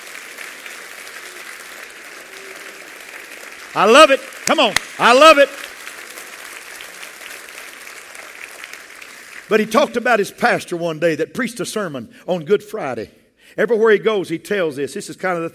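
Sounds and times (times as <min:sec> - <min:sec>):
audience clapping hands: 0:00.0 - 0:10.4
speech: 0:03.7 - 0:05.6, 0:09.5 - 0:15.5.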